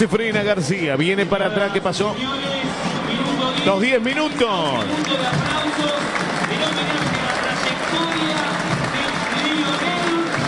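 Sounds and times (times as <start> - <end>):
speech: 0.0 - 2.9, 3.6 - 6.6
stadium crowd applauding: 3.0 - 10.4.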